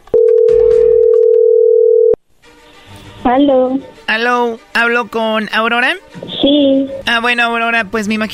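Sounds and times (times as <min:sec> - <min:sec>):
telephone connecting tone: 0:00.1 - 0:02.2
speech: 0:03.3 - 0:08.3.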